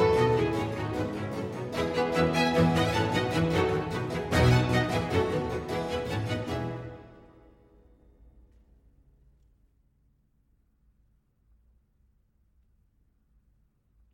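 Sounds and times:
string concerto in F major played very fast: 0.0 - 7.3.

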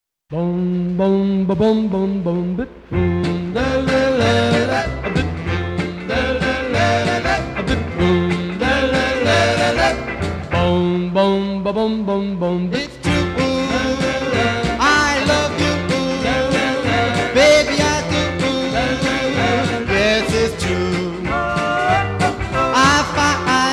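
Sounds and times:
doo wop singing: 0.3 - 23.7.

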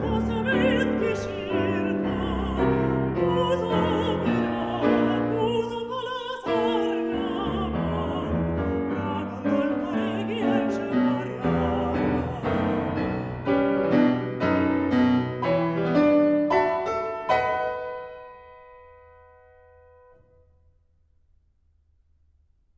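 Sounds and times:
person singing a folk song: 0.0 - 13.4
piano: 0.0 - 22.7.

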